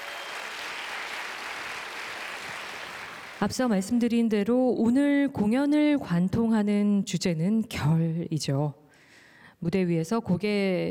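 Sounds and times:
audience applause: 0.0 - 3.5
speech: 3.4 - 8.8, 9.6 - 10.8.

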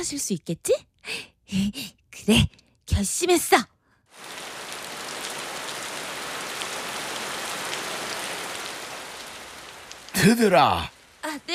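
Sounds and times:
speech: 0.0 - 4.4, 10.2 - 11.5
heavy rain pouring: 4.1 - 11.5.

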